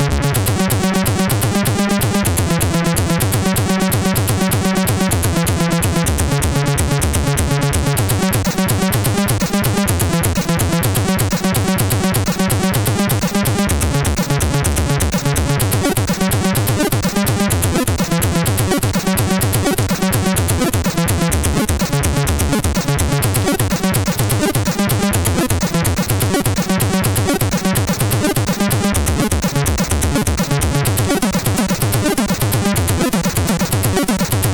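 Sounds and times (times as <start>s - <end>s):
Commodore 64 SID chiptune music in stereo: 0.2s - 34.5s.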